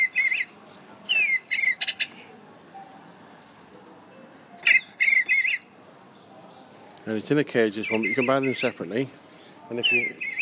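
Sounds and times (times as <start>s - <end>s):
Digibird electronic toy bird singing: 0.0s - 0.5s, 1.1s - 2.1s, 4.6s - 5.7s, 7.8s - 8.8s, 9.8s - 10.3s
speech: 7.1s - 10.3s.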